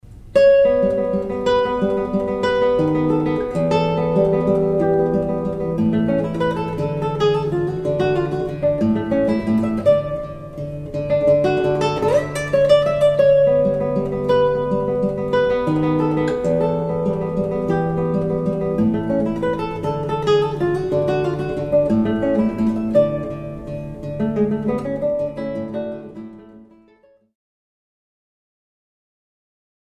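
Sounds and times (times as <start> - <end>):
marcato guitar melody: 0.0 - 27.3.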